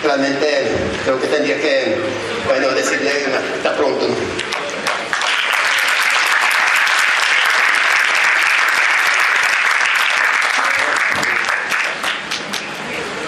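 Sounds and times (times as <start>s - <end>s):
speech: 0.1s - 4.6s
audience applause: 4.4s - 13.1s.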